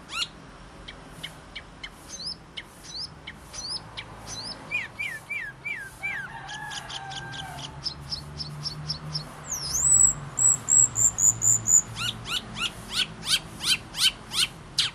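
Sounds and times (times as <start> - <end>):
bird song: 0.0 - 14.9.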